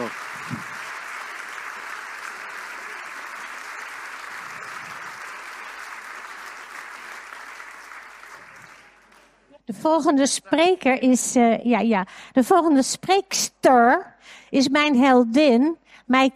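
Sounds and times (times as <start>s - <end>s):
audience applause: 0.0s - 9.4s
speech: 9.7s - 16.3s.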